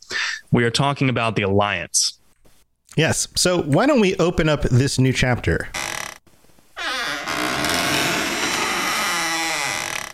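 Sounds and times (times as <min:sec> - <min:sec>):
speech: 0:00.5 - 0:02.2, 0:02.9 - 0:05.8
squeaky door opening: 0:05.8 - 0:06.2, 0:06.8 - 0:10.1.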